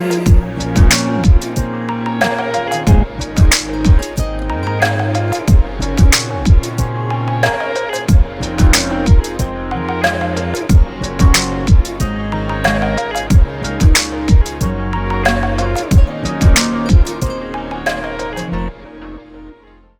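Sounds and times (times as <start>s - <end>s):
instrumental music: 0.0s - 19.9s.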